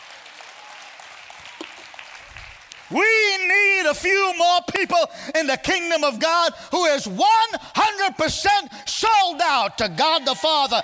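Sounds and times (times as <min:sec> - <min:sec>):
hand clapping: 0:00.0 - 0:02.9
speech: 0:02.9 - 0:10.8.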